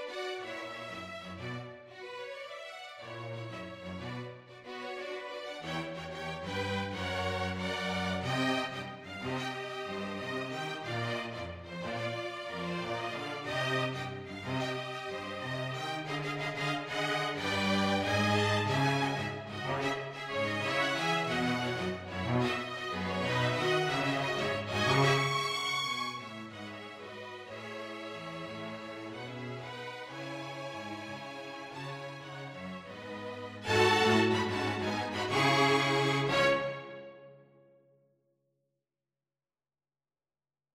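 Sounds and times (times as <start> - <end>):
string quartet playing a jazz arrangement: 3.0 - 37.1.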